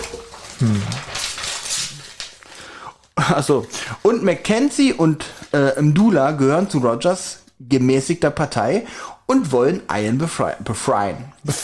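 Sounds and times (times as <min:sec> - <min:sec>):
paper page turning: 0:00.0 - 0:04.7
speech: 0:00.6 - 0:01.1, 0:03.3 - 0:11.6.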